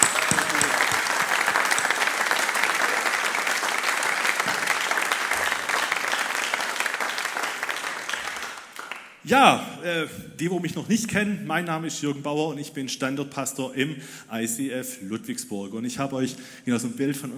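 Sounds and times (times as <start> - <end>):
audience applause: 0.0 - 9.1
speech: 9.3 - 17.3.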